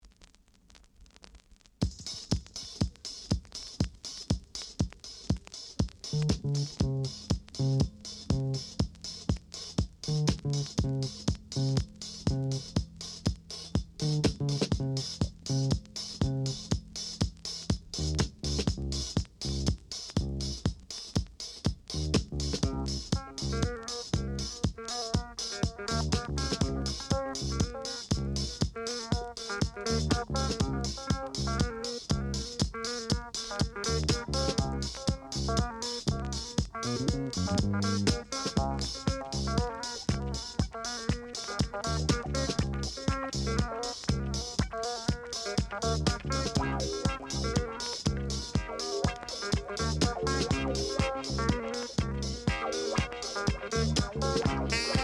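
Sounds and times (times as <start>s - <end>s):
disco dub music: 1.8s - 55.0s.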